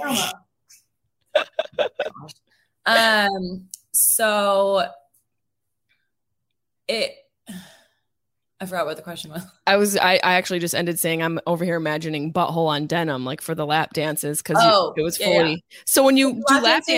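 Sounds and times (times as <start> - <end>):
speech: 0.0 - 0.4, 2.2 - 5.0, 6.9 - 7.7, 8.6 - 16.9
person imitating dog sneezes: 0.0 - 0.5
laughter: 1.3 - 2.4.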